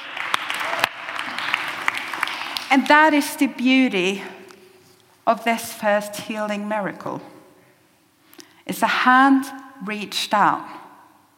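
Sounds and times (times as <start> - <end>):
audience applause for a volunteer during a sermon: 0.0 - 2.7
speech: 2.7 - 4.4, 5.3 - 7.4, 8.7 - 10.8.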